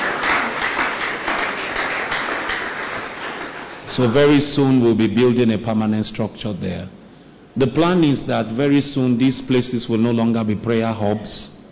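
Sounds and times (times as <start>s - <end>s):
audience clapping: 0.0s - 4.4s
speech: 4.0s - 7.0s, 7.6s - 11.6s.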